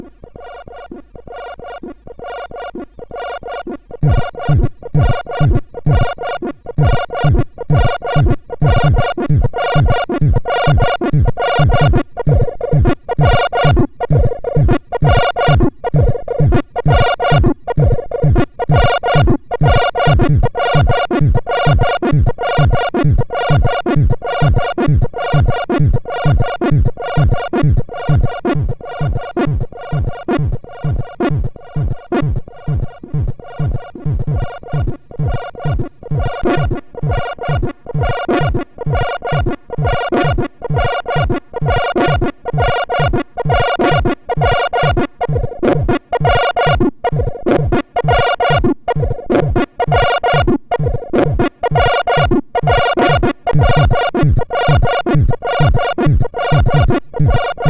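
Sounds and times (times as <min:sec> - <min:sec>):
MOS6581R2 SID chip synth: 0:00.0 - 0:57.6.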